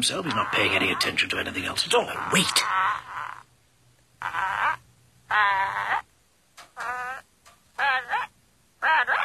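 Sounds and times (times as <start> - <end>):
speech: 0.0 - 3.1
parrot imitating a human voice: 0.3 - 1.1, 2.1 - 3.5, 4.2 - 6.1, 6.8 - 9.2.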